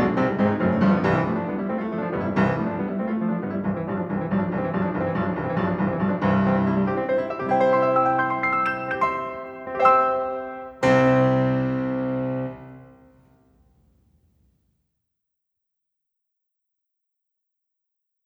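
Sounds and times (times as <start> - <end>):
piano piece in C major: 0.0 - 14.1.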